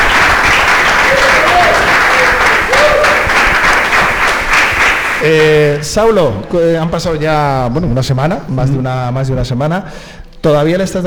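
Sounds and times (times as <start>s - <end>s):
audience applause: 0.0s - 5.8s
speech: 5.2s - 11.0s.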